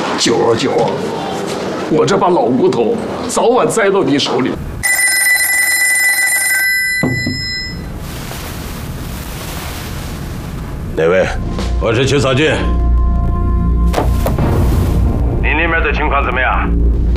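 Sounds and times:
speech: 0.2 - 1.2, 1.9 - 4.8, 11.9 - 12.9
telephone ringing: 4.8 - 7.9
low rumbling background: 7.8 - 17.1.

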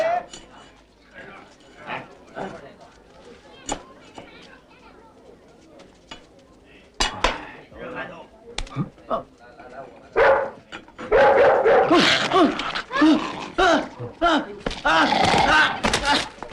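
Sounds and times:
people talking: 0.0 - 16.5
dog barking: 10.2 - 12.0.

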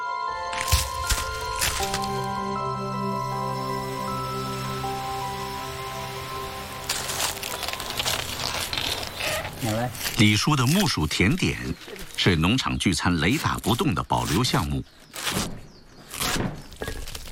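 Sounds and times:
soft musical drone: 0.0 - 9.2
crunching prawn crackers: 0.5 - 2.3, 6.8 - 12.6, 13.2 - 17.3
speech: 9.6 - 15.5.

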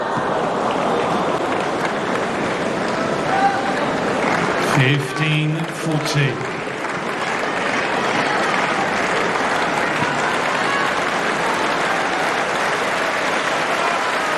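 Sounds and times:
tennis crowd applauding and cheering: 0.0 - 14.3
speech: 4.8 - 6.5.

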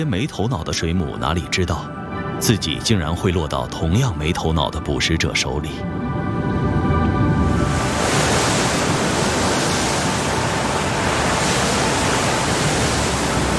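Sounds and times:
speech: 0.0 - 6.8
sea waves crashing against rocks: 7.6 - 13.5.

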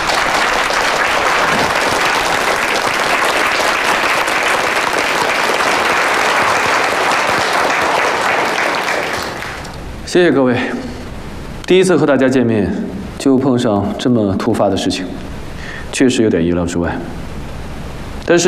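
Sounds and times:
audience applause: 0.0 - 9.8
speech: 10.1 - 10.9, 11.7 - 15.3, 15.9 - 17.3, 18.3 - 18.4.

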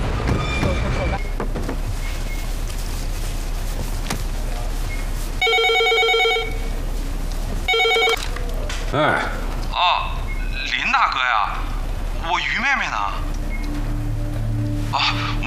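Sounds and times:
steady low rumble: 0.0 - 15.4
telephone ringing in electronic trilling bursts: 5.4 - 6.8, 7.7 - 8.4.

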